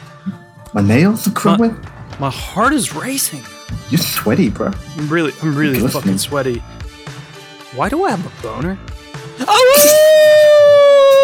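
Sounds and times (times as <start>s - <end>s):
speech: 0.2s - 6.8s, 7.8s - 10.4s
man imitating a werewolf howl: 9.4s - 11.2s.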